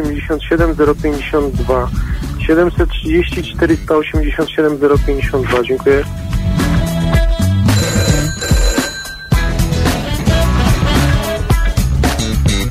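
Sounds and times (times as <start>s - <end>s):
speech: 0.0s - 6.2s
loud dense musical bed: 0.0s - 12.6s
telephone ringing: 7.7s - 10.4s.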